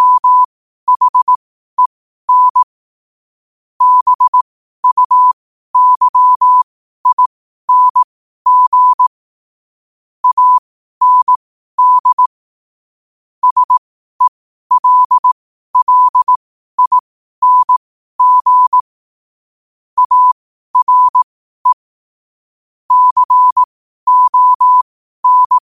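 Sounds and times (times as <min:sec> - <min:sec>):
morse code at 5 wpm: 0:00.0 - 0:02.7, 0:03.8 - 0:09.1, 0:10.2 - 0:12.2, 0:13.4 - 0:18.8, 0:20.0 - 0:21.8, 0:22.9 - 0:25.6.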